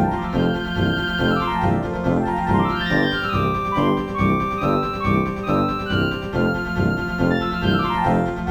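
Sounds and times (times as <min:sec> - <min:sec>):
forest welcome song: 0:00.1 - 0:08.3.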